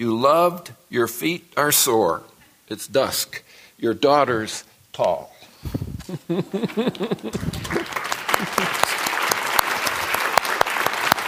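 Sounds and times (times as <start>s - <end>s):
speech: 0.0s - 7.8s
laughter: 6.0s - 9.3s
audience applause after a poem: 6.7s - 11.2s.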